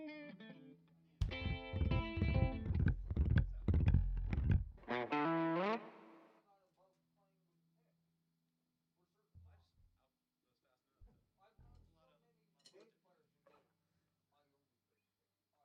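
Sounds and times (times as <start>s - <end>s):
string instruments mix: 1.2s - 6.1s.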